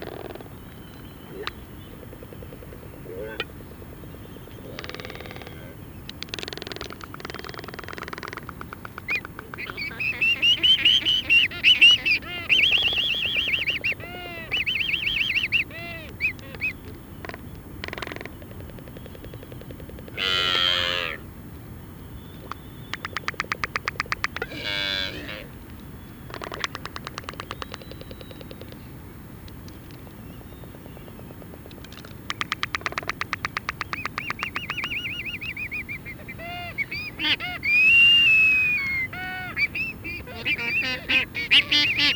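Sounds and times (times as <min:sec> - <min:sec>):
black-footed albatross calls: 0:04.7 - 0:21.2, 0:23.0 - 0:25.6, 0:32.4 - 0:42.1.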